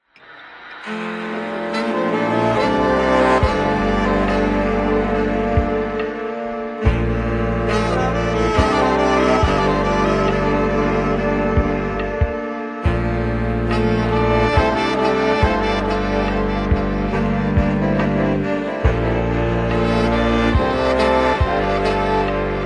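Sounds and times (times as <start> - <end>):
ambient music: 0.0 - 22.6.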